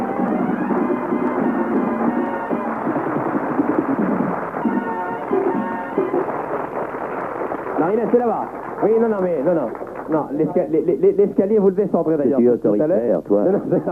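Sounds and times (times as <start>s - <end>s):
studio audience applauding: 0.0s - 11.0s
speech: 7.9s - 13.9s.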